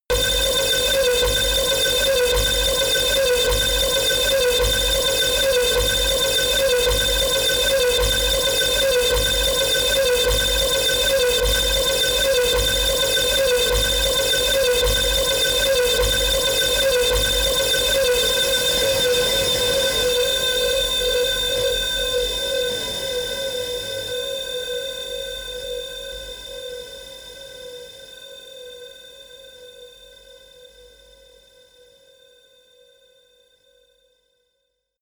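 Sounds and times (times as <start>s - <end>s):
siren: 0.1s - 25.7s.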